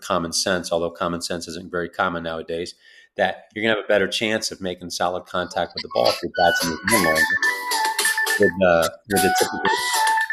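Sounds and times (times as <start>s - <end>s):
speech: 0.1s - 10.0s
phone ringtone: 5.8s - 10.3s.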